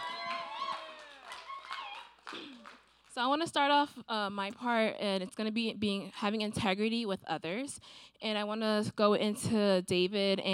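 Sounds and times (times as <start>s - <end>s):
audience applause: 0.0s - 2.9s
speech: 3.2s - 10.5s.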